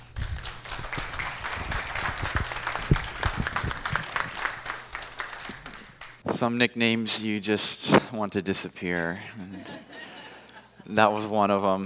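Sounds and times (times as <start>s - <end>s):
audience clapping to welcome a guest speaker: 0.0s - 6.2s
speech: 6.4s - 9.7s, 10.9s - 11.8s
laughter: 9.3s - 11.0s.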